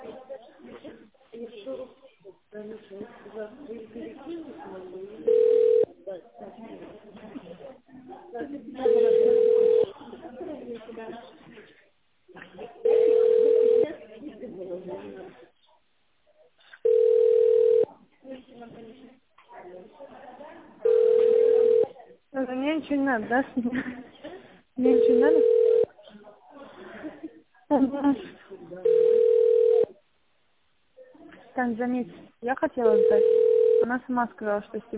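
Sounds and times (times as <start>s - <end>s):
telephone ringing tone: 5.2s - 5.9s, 8.8s - 9.9s, 12.8s - 13.9s, 16.8s - 17.9s, 20.8s - 21.9s, 24.9s - 25.9s, 28.8s - 29.9s, 32.9s - 33.9s
speech: 23.1s - 23.8s, 31.7s - 34.9s.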